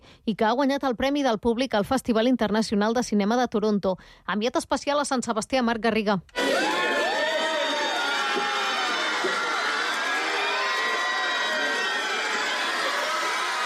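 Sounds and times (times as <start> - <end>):
speech: 0.2 - 6.7
crowd cheering Brad Pitt outside Hotel Maria Cristina, San Sebastián: 6.4 - 13.6.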